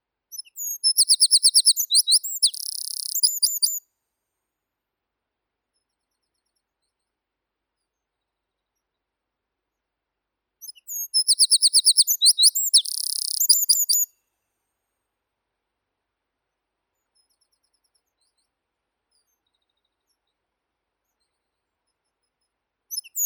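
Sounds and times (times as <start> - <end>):
wren Troglodytes troglodytes: 0.4 - 3.8, 10.7 - 14.1.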